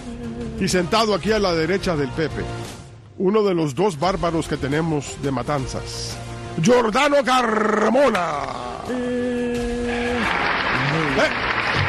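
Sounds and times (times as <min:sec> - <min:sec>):
speech: 0:00.1 - 0:09.4, 0:11.2 - 0:11.5
applause: 0:09.9 - 0:11.8.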